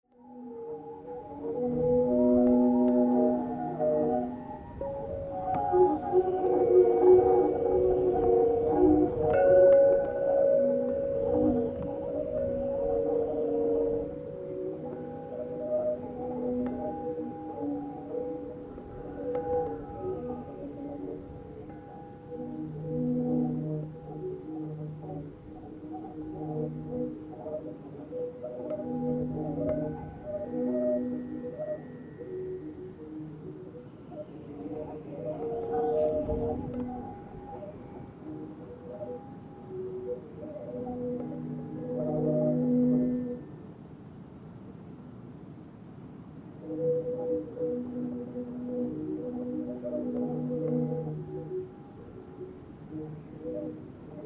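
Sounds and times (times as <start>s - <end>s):
northwest wind: 0.1s - 54.2s.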